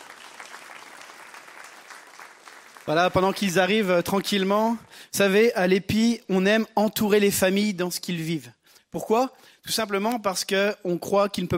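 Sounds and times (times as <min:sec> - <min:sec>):
audience applauding: 0:00.0 - 0:04.3
speech: 0:02.9 - 0:11.5.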